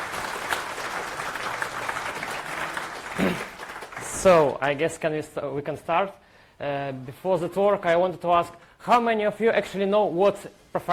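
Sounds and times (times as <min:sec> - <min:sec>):
audience applause: 0:00.0 - 0:04.5
speech: 0:03.2 - 0:03.5, 0:04.2 - 0:10.9.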